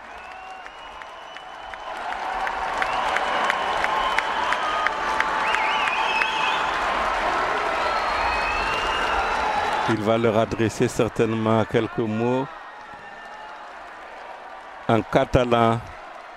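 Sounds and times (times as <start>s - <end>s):
high whistles: 0.0s - 1.9s, 2.8s - 6.8s, 7.8s - 9.9s
large faithful crowd applauding: 0.0s - 16.3s
speech: 9.9s - 12.6s, 14.9s - 15.9s.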